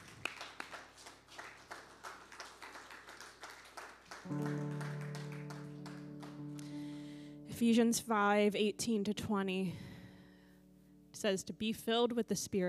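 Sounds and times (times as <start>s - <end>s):
audience clapping: 0.0s - 7.1s
speech: 4.2s - 4.6s, 7.6s - 9.9s, 11.2s - 12.6s
sustained keyboard chord: 4.3s - 11.2s.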